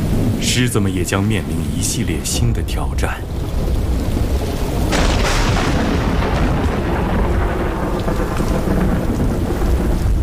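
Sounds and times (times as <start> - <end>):
deep rolling thunder: 0.0 - 10.2
heavy rain: 0.0 - 10.2
speech: 0.5 - 3.4
sharp thunder crack: 2.2 - 10.2.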